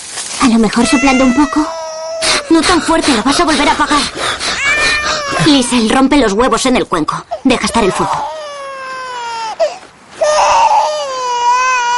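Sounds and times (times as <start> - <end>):
speech: 0.4 - 1.8, 2.5 - 4.5, 5.4 - 8.4
small child crying: 0.9 - 2.5, 4.6 - 5.5, 7.8 - 11.9.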